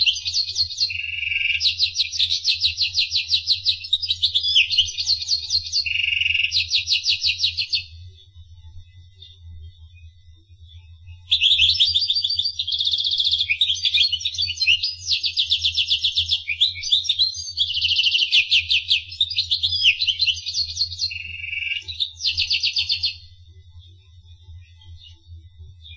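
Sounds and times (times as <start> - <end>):
finch singing: 0.0 - 8.0, 11.2 - 23.4.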